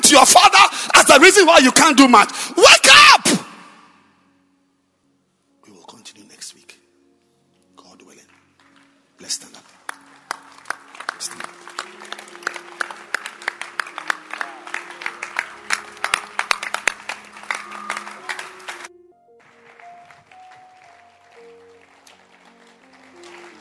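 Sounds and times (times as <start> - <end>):
speech: 0.2 - 2.7
audience clapping hands: 8.2 - 23.5.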